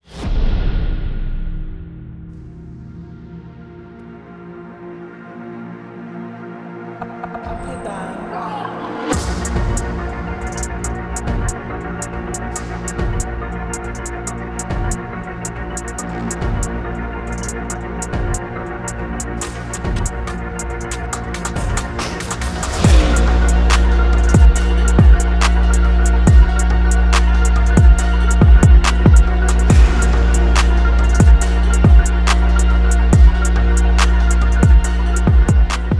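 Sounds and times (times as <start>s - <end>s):
music beat: 9.0s - 35.9s.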